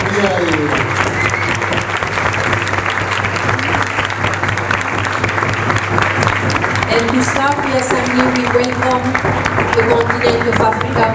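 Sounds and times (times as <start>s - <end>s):
applause at a world assembly for the African continent: 0.0s - 11.1s.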